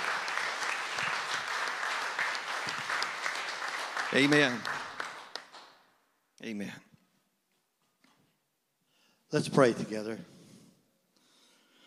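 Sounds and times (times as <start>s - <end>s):
audience applause: 0.0s - 5.8s
speech: 4.1s - 4.7s, 6.4s - 6.9s, 9.3s - 10.4s.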